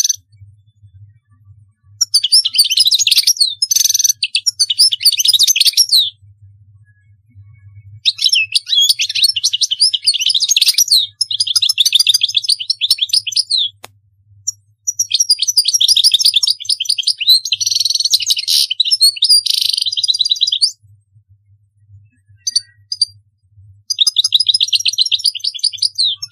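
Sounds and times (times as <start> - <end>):
European goldfinch singing: 2.0 - 6.2, 8.0 - 13.8, 14.9 - 20.8, 23.9 - 26.3.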